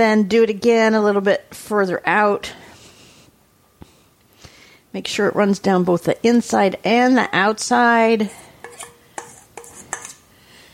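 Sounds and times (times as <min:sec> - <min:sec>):
speech: 0:00.0 - 0:02.6, 0:04.9 - 0:08.4
spoon spreading icing on cake plate: 0:08.2 - 0:10.2.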